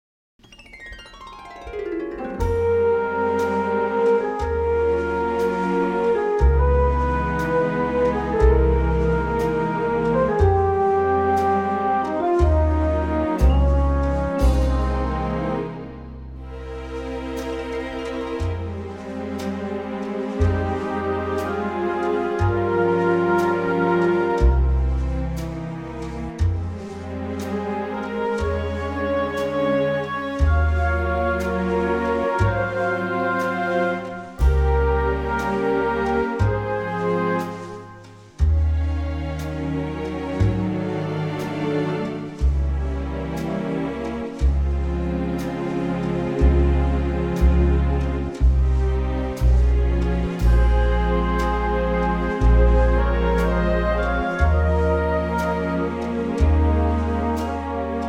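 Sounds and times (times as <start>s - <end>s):
FM orchestral synth: 0.4s - 58.0s.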